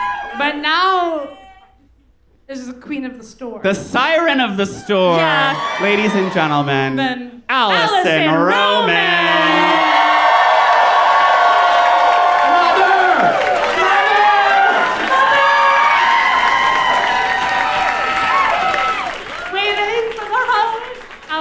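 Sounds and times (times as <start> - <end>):
studio audience cheering and whooping: 0.0 - 0.6, 4.6 - 7.0, 7.7 - 21.1
speech: 0.4 - 1.4, 2.5 - 9.6
studio audience applauding: 5.1 - 6.8, 8.0 - 21.3.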